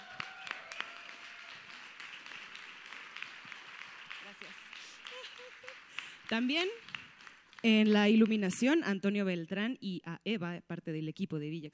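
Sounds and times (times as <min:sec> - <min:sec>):
audience applause: 0:00.0 - 0:07.7
speech: 0:04.3 - 0:07.0, 0:07.6 - 0:11.7.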